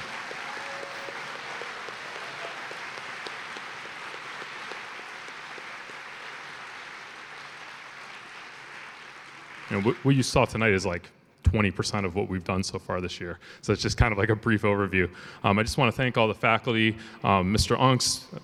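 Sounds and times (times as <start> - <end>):
crowd applauding: 0.0 - 10.8
speech: 9.7 - 18.4.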